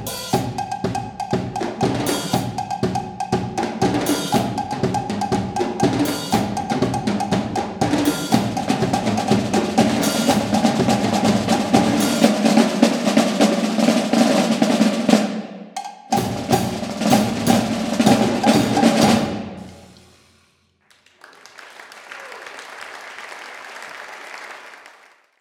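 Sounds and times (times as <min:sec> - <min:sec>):
drummers playing an encore: 0:00.0 - 0:20.3.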